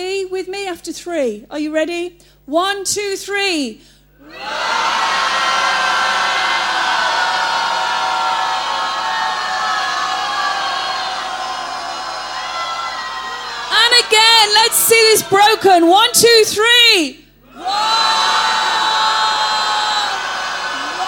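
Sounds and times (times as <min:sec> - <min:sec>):
speech: 0:00.0 - 0:05.0, 0:14.5 - 0:17.8
audience roaring together: 0:04.2 - 0:15.9, 0:17.4 - 0:21.0.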